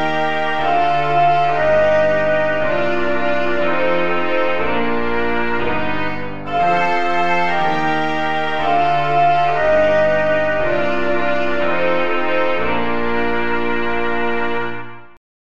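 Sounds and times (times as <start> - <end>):
instrumental music piece without tenor sax: 0.0 - 15.2.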